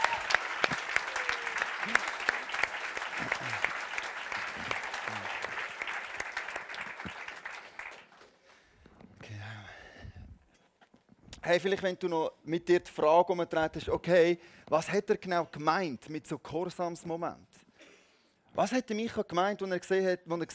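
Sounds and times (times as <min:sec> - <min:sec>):
applause: 0:00.0 - 0:08.6
speech: 0:11.5 - 0:17.5, 0:18.6 - 0:20.5.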